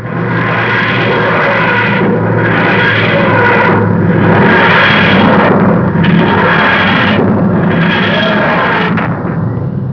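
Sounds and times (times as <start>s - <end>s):
TARDIS materialisation sound: 0.0s - 9.9s.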